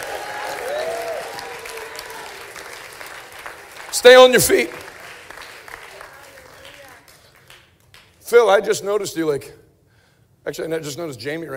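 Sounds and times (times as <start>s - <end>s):
audience applause: 0.0s - 8.1s
speech: 4.0s - 4.8s, 8.3s - 9.6s, 10.4s - 11.5s.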